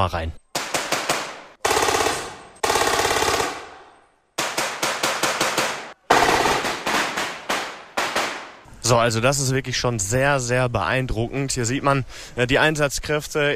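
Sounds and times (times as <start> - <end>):
speech: 0.0 - 0.4, 8.9 - 13.5
gunfire from a demonstration of close-quarters urban combat: 0.5 - 8.7.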